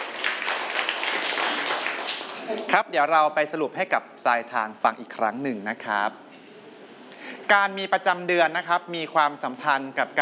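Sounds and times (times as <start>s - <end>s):
students clapping: 0.0s - 2.8s
speech: 2.5s - 6.2s, 7.5s - 10.2s.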